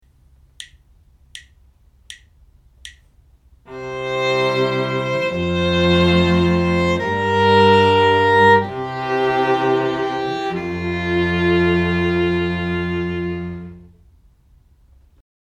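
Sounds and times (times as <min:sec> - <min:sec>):
string quartet playing: 0:03.7 - 0:14.0.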